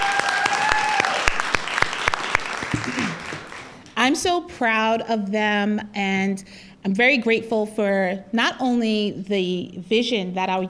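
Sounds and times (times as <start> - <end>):
audience applause for organizers: 0.0 - 3.8
speech: 4.1 - 10.6.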